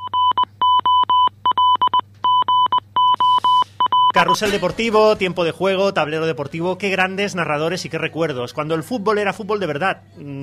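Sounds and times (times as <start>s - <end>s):
radio goal beep tone in Morse code: 0.0s - 4.6s
speech: 4.2s - 10.4s.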